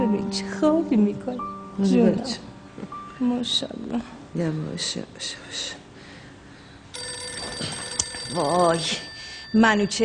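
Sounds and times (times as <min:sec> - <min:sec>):
speech: 0:00.2 - 0:05.8, 0:08.3 - 0:10.0
telephone ringing: 0:06.9 - 0:10.0.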